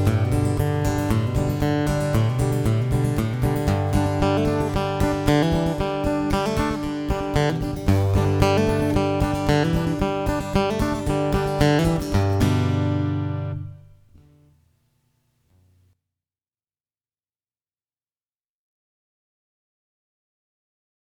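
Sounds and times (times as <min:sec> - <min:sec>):
blues music: 0:00.0 - 0:14.6.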